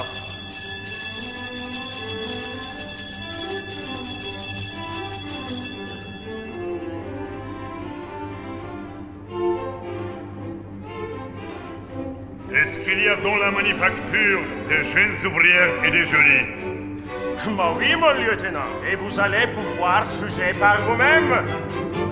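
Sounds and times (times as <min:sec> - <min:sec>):
bell ringing: 0:00.0 - 0:09.0, 0:12.7 - 0:19.8
speech: 0:12.7 - 0:16.6, 0:17.4 - 0:22.0.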